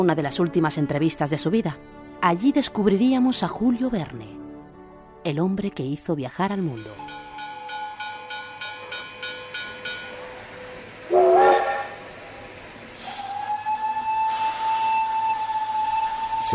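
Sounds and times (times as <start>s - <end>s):
speech: 0.0s - 4.4s, 5.2s - 7.2s
steam train hissing steam at a railway station: 7.3s - 16.5s
steam train whistle at a railway station: 10.2s - 16.5s.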